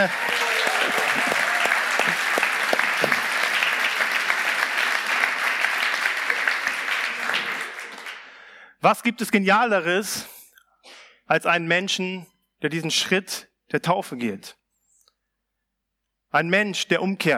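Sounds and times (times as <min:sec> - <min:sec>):
speech: 0:00.0 - 0:00.2, 0:08.8 - 0:10.3, 0:11.3 - 0:14.6, 0:16.3 - 0:17.3
audience applauding: 0:00.0 - 0:08.6.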